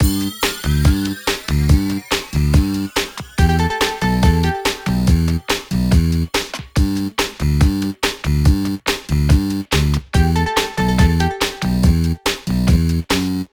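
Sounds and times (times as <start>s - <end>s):
music: 0.0s - 13.5s.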